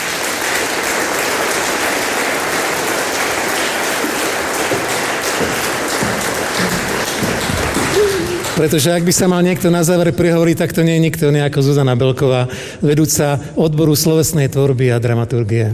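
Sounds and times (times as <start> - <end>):
applause: 0.0 - 9.5
speech: 8.6 - 15.7.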